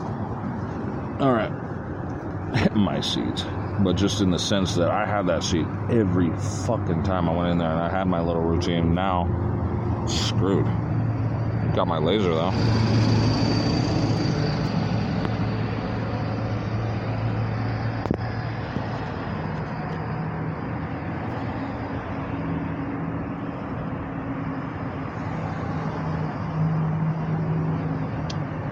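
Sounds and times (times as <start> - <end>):
bus engine drone from inside a moving bus: 0.0 - 28.7
road noise from inside a moving bus: 0.0 - 28.7
speech: 1.2 - 1.7, 2.5 - 10.8, 11.7 - 13.6
low humming tone: 7.7 - 28.5.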